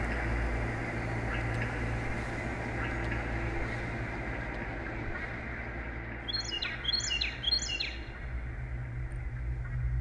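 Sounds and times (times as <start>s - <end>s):
backhoe: 0.0s - 6.8s
birds: 0.0s - 9.9s.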